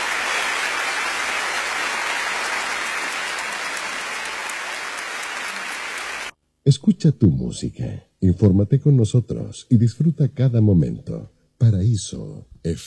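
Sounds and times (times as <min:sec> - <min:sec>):
crowd applause: 0:00.0 - 0:06.4
speech: 0:06.6 - 0:12.8.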